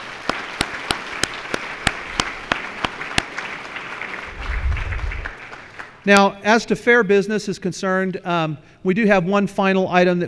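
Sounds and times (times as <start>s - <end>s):
sharp steady claps: 0.0s - 4.2s
audience round of applause: 0.0s - 6.0s
speech: 6.0s - 10.2s.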